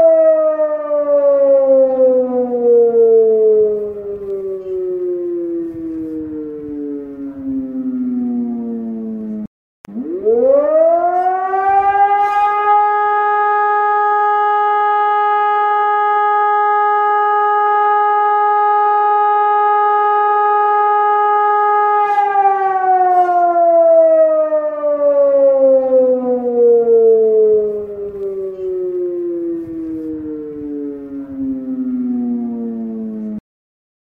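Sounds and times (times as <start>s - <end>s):
ECI600 fire brigade siren on a mast: 0.0s - 33.4s.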